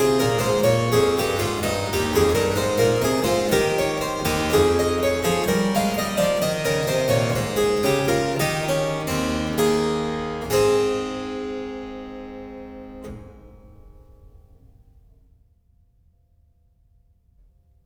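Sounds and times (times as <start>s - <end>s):
keyboard prelude and fugue: 0.0s - 13.5s.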